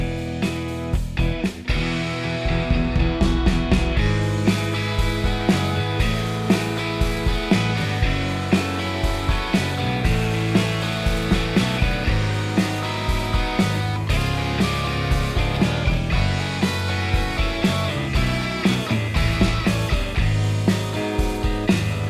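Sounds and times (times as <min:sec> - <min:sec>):
lead melody: 0:00.1 - 0:22.0.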